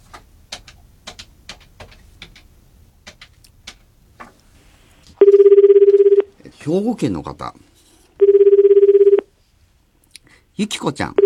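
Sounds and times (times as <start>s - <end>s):
outgoing phone call ring tone to a home in Hyogo Prefecture, Japan: 5.2s - 6.3s, 8.2s - 9.3s
speech: 6.7s - 7.7s, 10.6s - 11.2s.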